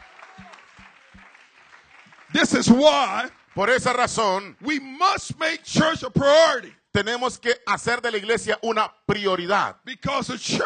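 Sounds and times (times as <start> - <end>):
audience applause: 0.0 - 4.4
speech: 2.3 - 10.6.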